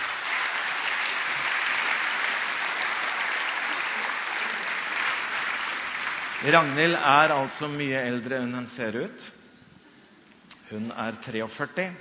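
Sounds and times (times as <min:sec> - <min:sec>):
audience applause: 0:00.0 - 0:07.7
speech: 0:06.4 - 0:09.4, 0:10.7 - 0:11.9.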